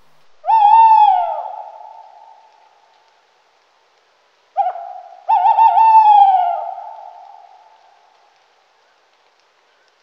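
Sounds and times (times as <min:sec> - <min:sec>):
tawny owl Strix aluco calling: 0:00.0 - 0:02.8, 0:04.5 - 0:09.1.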